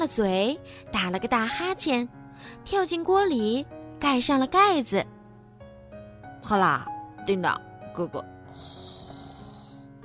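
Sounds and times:
speech: 0.0 - 5.2, 6.4 - 8.7
dinosaur snoring while asleep: 8.5 - 9.9.

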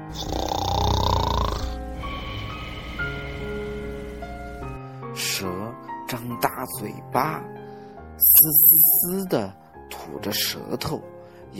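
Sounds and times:
person snoring while fast asleep: 0.0 - 4.8
speech: 0.1 - 0.4, 5.4 - 7.6, 8.2 - 11.5
steady tonal hum: 1.7 - 4.8.

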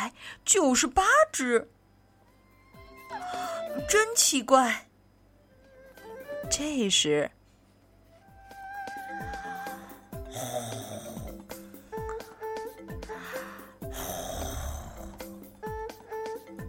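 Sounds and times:
speech: 0.1 - 1.8, 3.2 - 4.9, 6.4 - 7.4
snoring: 9.5 - 11.5, 13.8 - 15.4.

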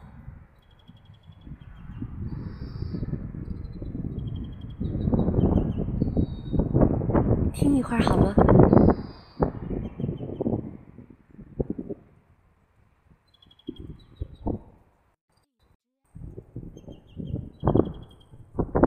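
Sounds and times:
birdsong from a tree: 0.0 - 6.8, 8.6 - 10.6, 13.2 - 14.8, 16.6 - 18.5
speech: 7.7 - 8.7.

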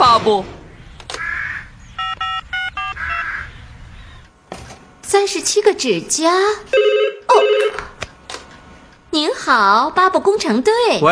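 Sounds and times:
speech: 0.2 - 0.6, 5.1 - 7.9, 9.1 - 11.1
telephone being dialed with electronic beeps: 2.0 - 3.0
raspy squawk-like sound: 2.9 - 4.2.

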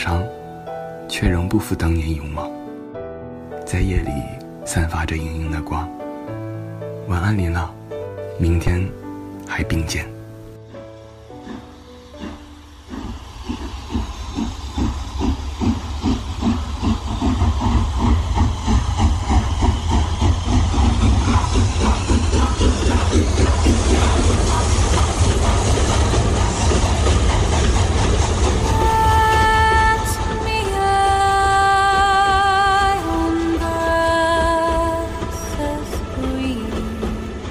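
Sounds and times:
speech: 1.1 - 2.6, 3.7 - 6.4, 7.1 - 7.8, 8.4 - 10.1
steam train chugging: 9.9 - 37.4.

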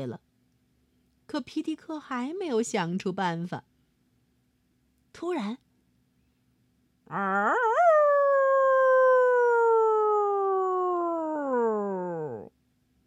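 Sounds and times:
speech: 0.0 - 0.3, 1.3 - 3.7, 5.2 - 5.6, 7.1 - 7.8
wolf pack howling: 7.1 - 12.5.

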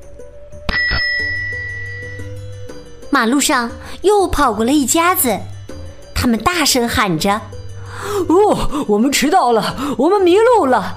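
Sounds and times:
bicycle bell ringing: 0.7 - 2.4
speech: 3.1 - 5.5, 6.2 - 10.9.

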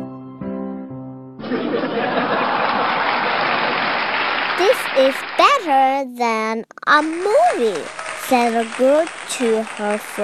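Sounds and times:
audience laughing: 1.4 - 5.3
audience clapping: 1.4 - 5.9, 6.9 - 10.2
speech: 1.5 - 2.2, 4.6 - 10.2.

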